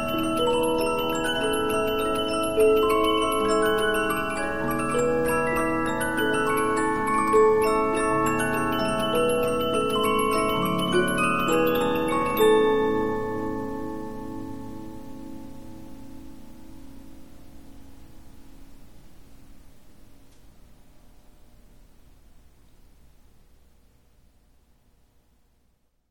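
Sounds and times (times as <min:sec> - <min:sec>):
Polyphon 15-inch disc music box playing: 0:00.0 - 0:14.7.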